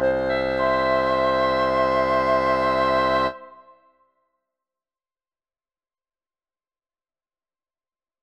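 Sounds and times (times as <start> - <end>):
woodwind music: 0.0 - 3.9.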